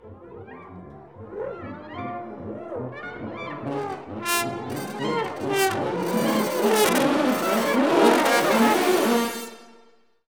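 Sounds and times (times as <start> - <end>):
low brass: 3.2 - 9.9.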